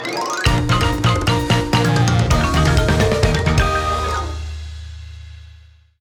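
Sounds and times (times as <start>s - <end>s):
win jingle: 0.0s - 4.6s.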